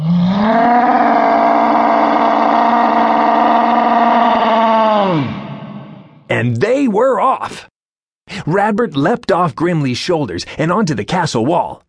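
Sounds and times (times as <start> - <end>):
loud low raspy growl: 0.0 - 6.2
speech: 6.4 - 7.7, 8.5 - 11.8.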